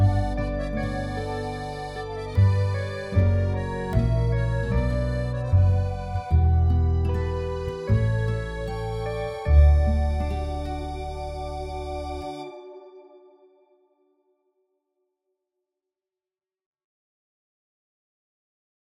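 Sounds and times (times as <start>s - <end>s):
autumn dusk background music: 0.0s - 13.8s.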